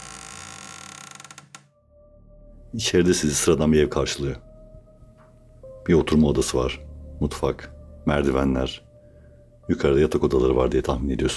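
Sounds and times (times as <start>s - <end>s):
door creaking open: 0.0s - 1.8s
faint steady hum: 2.5s - 11.3s
speech: 2.7s - 4.5s, 5.8s - 8.9s, 9.7s - 11.3s.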